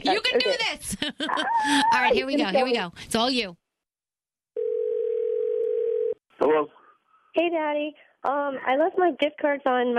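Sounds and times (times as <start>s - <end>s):
speech: 0.0s - 3.6s, 6.4s - 6.8s, 7.4s - 9.9s
telephone call ringing tone: 4.6s - 6.2s.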